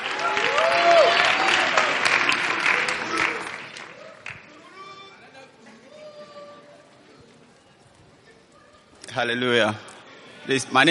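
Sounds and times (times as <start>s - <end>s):
audience applause welcoming a speaker to share a testimony: 0.0s - 4.6s
speech: 9.2s - 10.8s.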